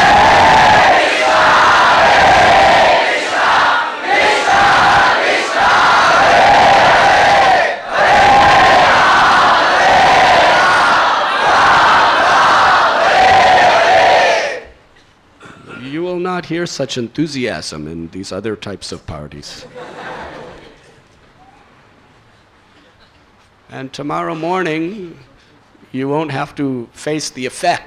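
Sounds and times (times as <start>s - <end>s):
crowd of devotees chanting holy names while dancing: 0.0s - 14.8s
speech: 16.5s - 19.9s, 23.7s - 25.3s, 25.9s - 27.8s
laughter: 19.5s - 21.2s.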